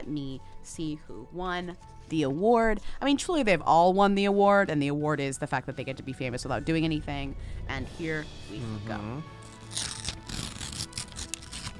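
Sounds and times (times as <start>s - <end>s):
speech: 0.1s - 9.9s
paper tearing at an award announcement: 9.4s - 11.7s.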